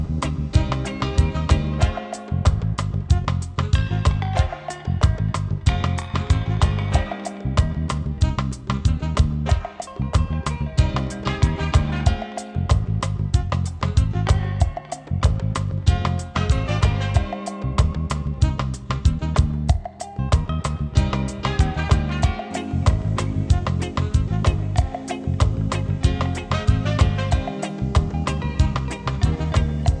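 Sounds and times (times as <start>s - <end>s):
reggae music: 0.0s - 29.9s.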